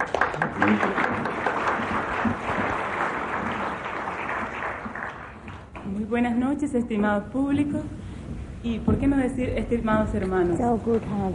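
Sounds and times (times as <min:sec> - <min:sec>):
audience applause: 0:00.0 - 0:05.7
speech: 0:00.6 - 0:01.0, 0:06.1 - 0:08.0, 0:08.6 - 0:11.3.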